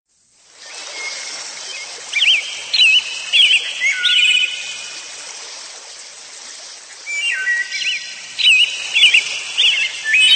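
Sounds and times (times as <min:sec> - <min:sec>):
bird song of high thin chirps and twittering whistles: 0:01.0 - 0:04.8, 0:07.1 - 0:10.3.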